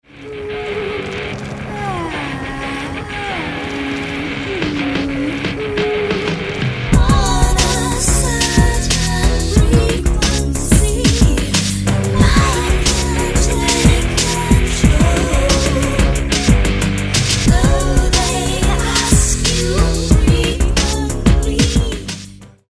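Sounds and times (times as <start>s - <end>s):
distorted sound: 0.0s - 22.5s.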